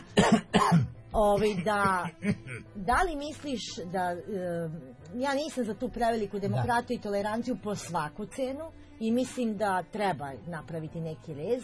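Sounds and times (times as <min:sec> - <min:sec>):
person coughing: 0:00.1 - 0:02.6
voiced throat clearing: 0:00.2 - 0:01.6
speech: 0:00.2 - 0:11.6.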